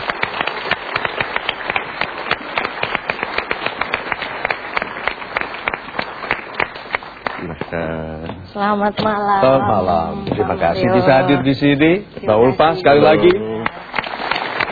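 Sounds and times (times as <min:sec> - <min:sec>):
audience applause welcoming a guest: 0:00.0 - 0:08.0, 0:12.6 - 0:14.7
speech: 0:08.5 - 0:13.5.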